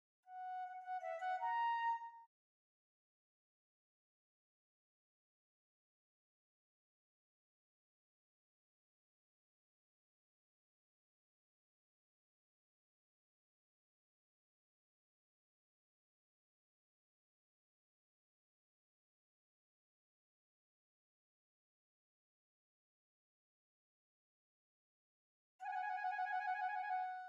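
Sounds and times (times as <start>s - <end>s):
piccolo: 0.3s - 2.3s, 25.6s - 27.2s.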